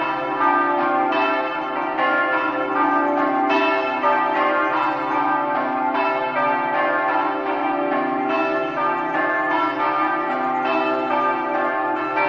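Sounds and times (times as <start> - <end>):
bells ringing: 0.0 - 12.2.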